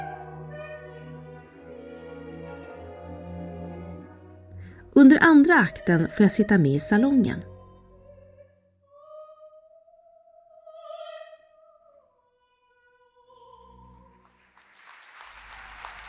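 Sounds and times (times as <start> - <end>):
orchestral and sung opera tones: 0.0 - 14.7
speech: 5.0 - 7.5
opera audience applause and cheering: 14.1 - 16.0.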